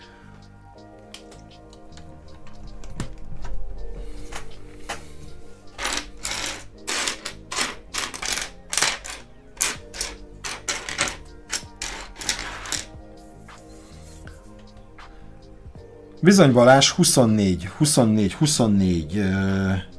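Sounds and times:
plastic construction-set pieces of a Batmobile set being handled and sorted: 5.8s - 12.9s
speech: 16.2s - 19.9s.

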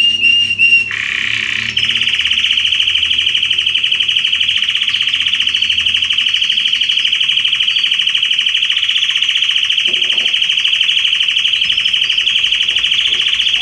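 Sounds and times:
Red Belgian canary singing: 0.0s - 13.6s.

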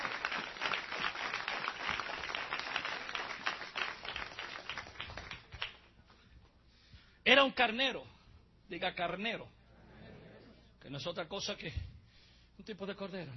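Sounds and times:
church congregation applauding during a sermon: 0.0s - 5.9s
speech: 7.3s - 8.1s, 8.7s - 9.6s, 10.8s - 11.8s, 12.7s - 13.3s.

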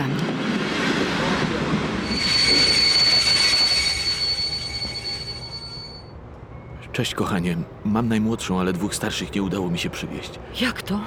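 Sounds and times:
train rumbling along the rails: 0.0s - 10.4s
train wheels squealing on rails: 1.2s - 6.9s
speech: 7.0s - 11.0s.

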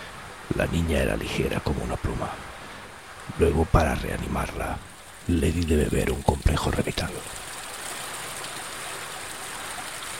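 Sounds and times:
underground river flowing: 0.0s - 10.1s
speech: 0.5s - 2.6s, 3.3s - 7.5s.

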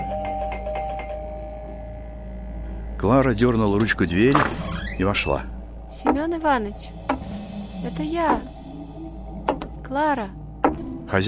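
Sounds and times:
doorbell ringing: 0.0s - 1.9s
speech: 3.0s - 7.1s, 7.8s - 8.5s, 10.0s - 10.4s, 11.1s - 11.2s.

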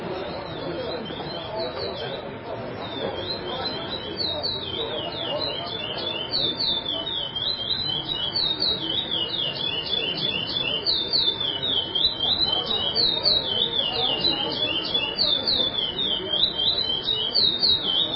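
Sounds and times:
chestnut-bellied seed finch song: 0.2s - 18.1s.

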